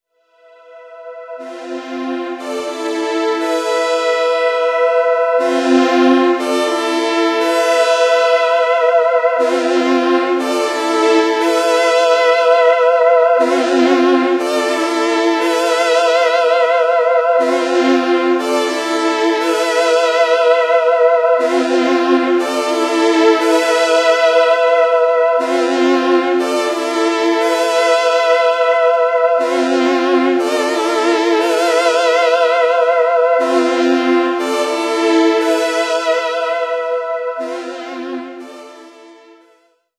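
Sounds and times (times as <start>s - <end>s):
synth pad: 0.3s - 39.4s.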